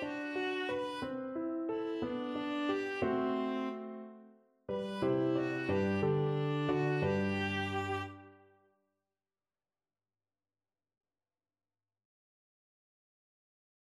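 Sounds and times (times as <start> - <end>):
viola playing a pastorale: 0.0 - 8.4.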